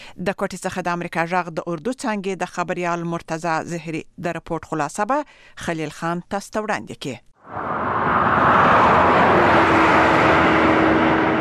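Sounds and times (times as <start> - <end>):
speech: 0.2 - 8.6
low engine hum of highway traffic: 7.4 - 11.3
road traffic on the Kalat–Quetta–Chaman national highway in Balochistan: 7.4 - 11.3.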